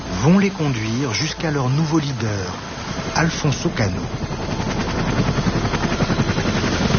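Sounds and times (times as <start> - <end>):
helicopter engine roar: 0.0 - 6.9
speech: 0.2 - 5.5
helicopter rotors as helicopters land: 2.6 - 6.9.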